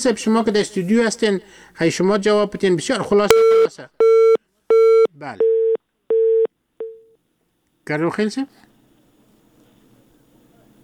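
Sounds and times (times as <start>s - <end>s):
speech: 0.0s - 4.2s, 5.1s - 5.6s, 7.9s - 8.6s
telephone busy tone after a call is cut off: 3.3s - 7.1s.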